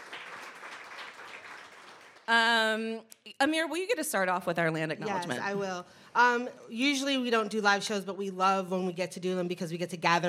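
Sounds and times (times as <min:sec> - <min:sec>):
audience applause: 0:00.0 - 0:02.3
speech: 0:02.3 - 0:10.2.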